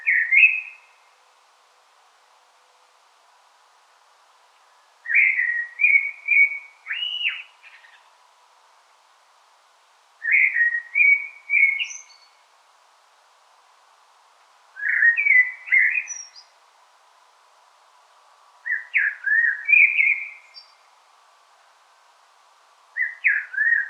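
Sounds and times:
common blackbird song: 0:00.0 - 0:01.1, 0:04.6 - 0:08.2, 0:10.2 - 0:12.4, 0:14.8 - 0:16.6, 0:18.6 - 0:20.9, 0:23.0 - 0:23.8.

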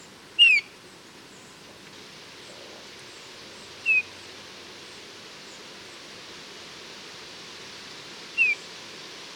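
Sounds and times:
Eurasian bullfinch Pyrrhula pyrrhula mellow downslurred piping whistle: 0:00.4 - 0:00.7, 0:03.8 - 0:04.1, 0:08.4 - 0:08.6.

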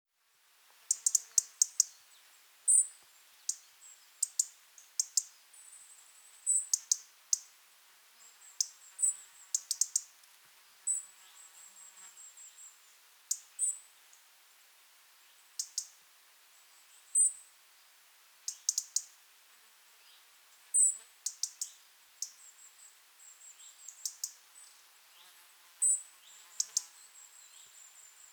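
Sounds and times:
faint high hiss: 0:00.1 - 0:28.3
European robin tick calls: 0:00.9 - 0:02.0, 0:04.2 - 0:05.4, 0:06.5 - 0:07.5, 0:08.6 - 0:08.8, 0:09.5 - 0:10.2, 0:15.6 - 0:16.0, 0:18.5 - 0:19.1, 0:21.2 - 0:22.4, 0:23.9 - 0:24.4.

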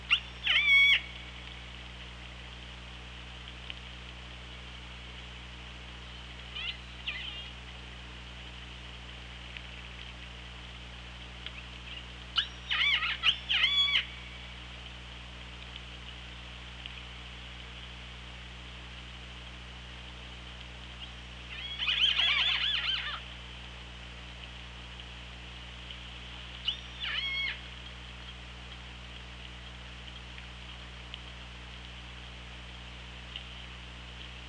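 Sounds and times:
orca pulsed calls underwater: 0:00.0 - 0:01.9, 0:06.0 - 0:07.7, 0:11.5 - 0:14.8, 0:20.9 - 0:23.4, 0:26.5 - 0:29.0
hydrophone hiss and low electrical hum: 0:00.0 - 0:34.4.

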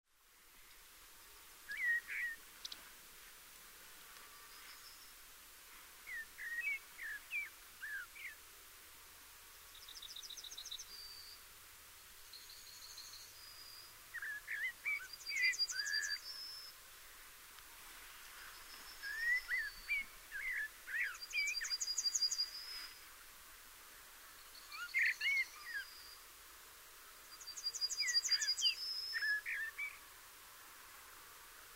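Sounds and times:
Eurasian blackbird song: 0:01.7 - 0:02.9, 0:06.0 - 0:08.4, 0:09.7 - 0:11.4, 0:12.3 - 0:16.8, 0:18.4 - 0:23.0, 0:24.3 - 0:26.3, 0:27.2 - 0:30.0.

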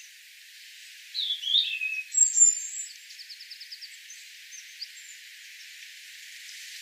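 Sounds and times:
European robin song: 0:01.1 - 0:05.2.

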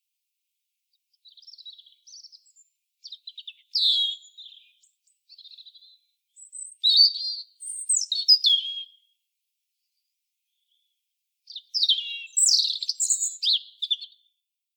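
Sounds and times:
European robin whistling song: 0:01.3 - 0:09.1, 0:11.5 - 0:14.2.

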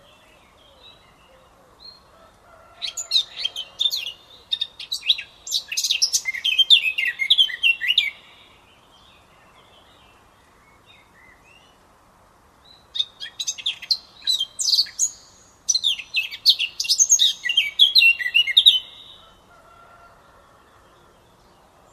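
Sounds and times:
Eurasian blackcap singing: 0:02.9 - 0:09.0, 0:12.7 - 0:19.2.

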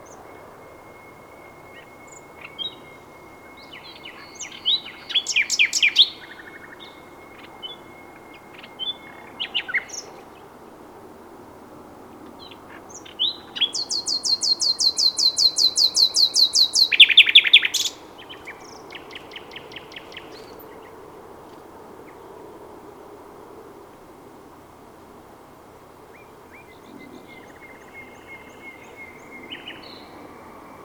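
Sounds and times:
common nightingale singing: 0:00.0 - 0:10.3, 0:12.4 - 0:21.0, 0:26.2 - 0:30.8.

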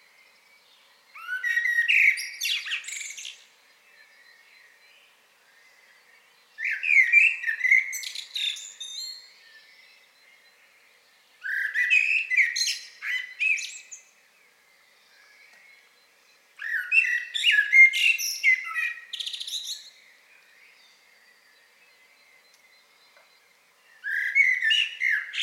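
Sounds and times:
common blackbird singing: 0:00.0 - 0:25.4.

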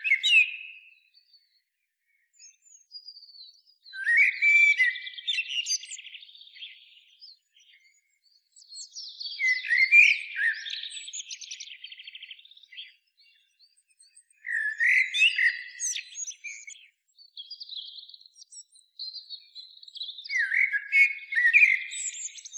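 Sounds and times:
common blackbird song: 0:00.0 - 0:22.5.

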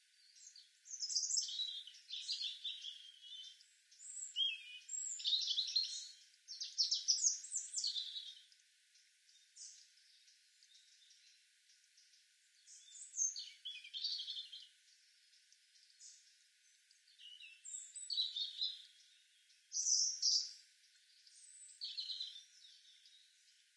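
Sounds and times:
European robin song: 0:00.2 - 0:08.4, 0:12.6 - 0:14.7, 0:17.1 - 0:23.3.

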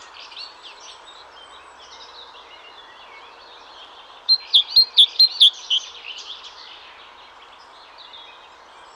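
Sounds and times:
great tit Parus major calling: 0:04.3 - 0:06.3.

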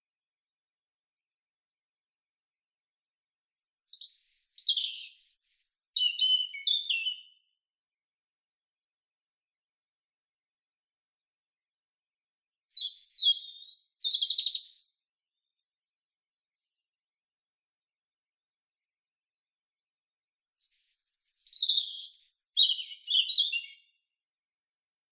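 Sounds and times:
European robin singing: 0:03.6 - 0:07.5, 0:12.5 - 0:15.1, 0:20.4 - 0:24.0.

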